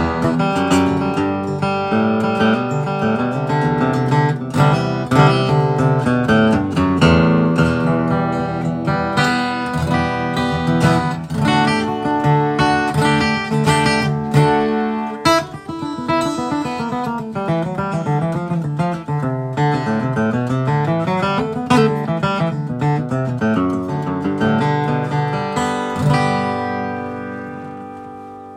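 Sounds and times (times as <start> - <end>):
Gibson J45 acoustic guitar: 0.0 - 28.5.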